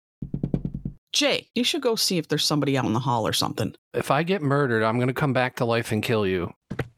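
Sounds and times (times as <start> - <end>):
banging knock on a door: 0.2 - 1.0
speech: 1.1 - 6.9.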